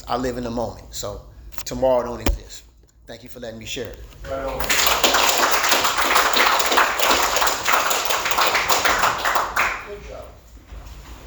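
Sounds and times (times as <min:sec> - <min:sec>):
speech: 0:00.1 - 0:06.4
audience applause: 0:04.6 - 0:10.0.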